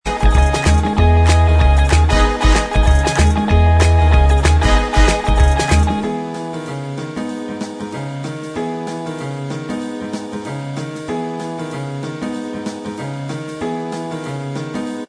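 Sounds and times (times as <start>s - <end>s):
instrumental backing track: 0.0s - 15.0s.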